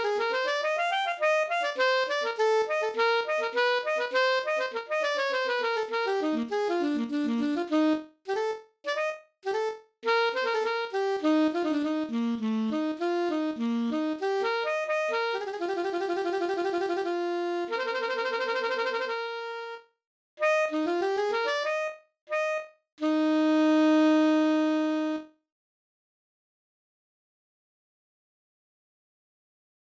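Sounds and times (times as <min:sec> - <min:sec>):
alto saxophone: 0:00.0 - 0:25.4.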